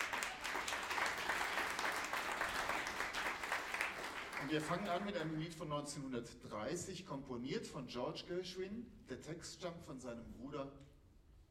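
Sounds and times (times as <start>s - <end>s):
audience applause: 0.0s - 5.2s
speech: 4.4s - 10.9s.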